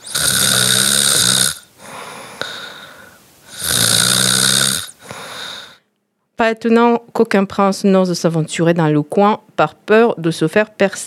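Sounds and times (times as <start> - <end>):
loud snoring: 0.0 - 1.7, 3.5 - 5.7
speech: 6.4 - 11.0.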